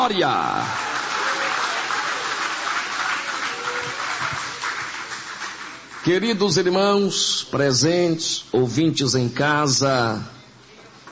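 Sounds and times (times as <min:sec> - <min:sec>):
speech: 0:00.0 - 0:00.9, 0:06.0 - 0:10.4
audience applauding: 0:00.4 - 0:06.2.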